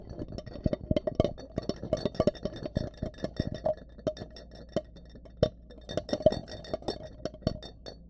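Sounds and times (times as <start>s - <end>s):
glassware: 0.0s - 8.0s.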